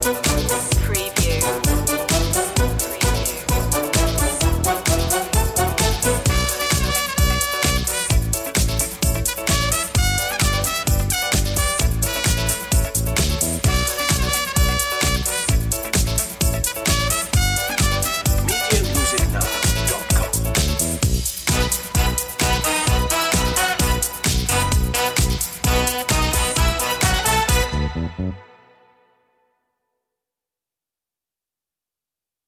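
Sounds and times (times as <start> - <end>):
funk jazz music: 0.0 - 28.4.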